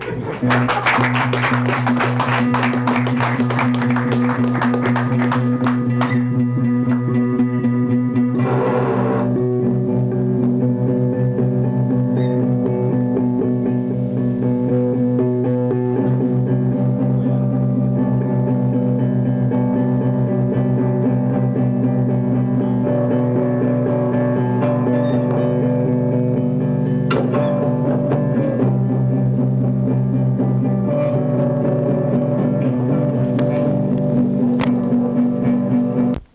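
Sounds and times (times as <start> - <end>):
laughter: 0.0 - 7.2
live guitar: 0.0 - 36.3.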